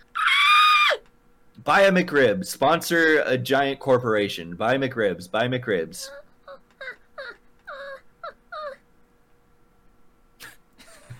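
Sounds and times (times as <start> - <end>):
speech: 1.6 - 6.2
person imitating baby monkey noises: 6.1 - 8.8.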